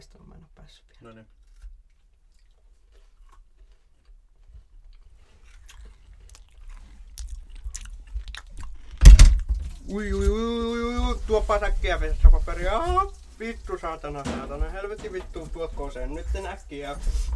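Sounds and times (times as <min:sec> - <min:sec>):
speech: 0:00.7 - 0:01.4, 0:09.9 - 0:17.3
person chewing a crunchy snack: 0:00.9 - 0:09.1.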